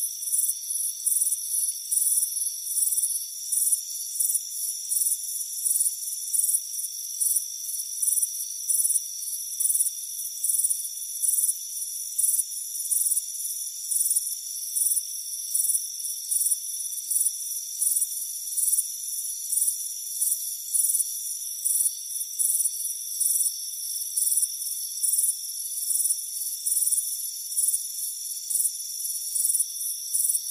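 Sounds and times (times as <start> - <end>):
cricket chirping: 0.0 - 30.4
high-pitched insect chorus: 0.0 - 30.4.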